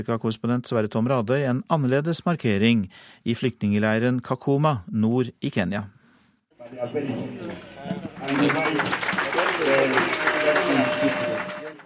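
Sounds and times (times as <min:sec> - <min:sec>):
speech: 0:00.0 - 0:06.0, 0:06.6 - 0:11.3
applause in refugee camp: 0:07.4 - 0:11.8
cheering in refugee camp: 0:08.0 - 0:11.8.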